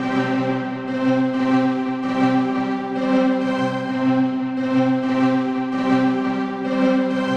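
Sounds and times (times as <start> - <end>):
trance string loop in C: 0.0 - 7.3.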